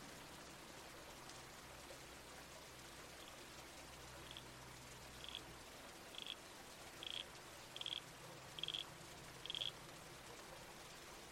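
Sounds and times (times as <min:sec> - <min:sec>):
soft hiss of creek and wind: 0:00.0 - 0:11.3
red-crowned toadlet calling: 0:04.2 - 0:04.4, 0:05.2 - 0:05.4, 0:06.2 - 0:06.4, 0:07.0 - 0:07.2, 0:07.8 - 0:08.0, 0:08.6 - 0:08.8, 0:09.4 - 0:09.7.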